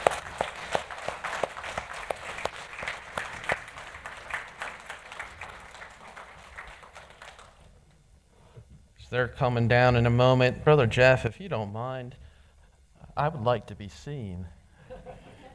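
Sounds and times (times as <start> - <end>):
church audience applauding the choir: 0.0 - 7.8
speech: 9.1 - 12.2, 13.2 - 14.6.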